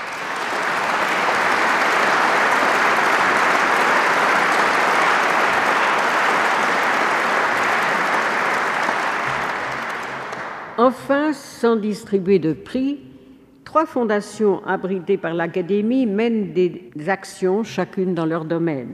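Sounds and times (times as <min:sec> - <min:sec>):
audience applause: 0:00.0 - 0:10.8
speech: 0:11.1 - 0:13.1, 0:13.7 - 0:18.9.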